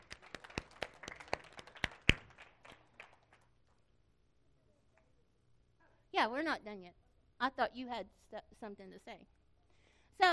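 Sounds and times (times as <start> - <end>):
children clapping hands: 0.0 - 3.8
speech: 6.2 - 9.4, 10.2 - 10.3.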